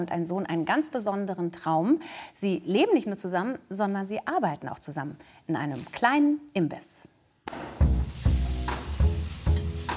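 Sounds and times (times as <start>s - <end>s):
speech: 0.0s - 8.0s
food sizzling and simmering on a stovetop: 7.6s - 9.9s.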